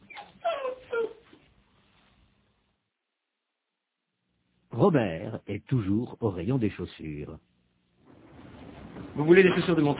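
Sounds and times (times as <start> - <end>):
dog whimpering and yipping: 0.0 - 1.4
speech: 4.8 - 7.5, 9.2 - 9.9.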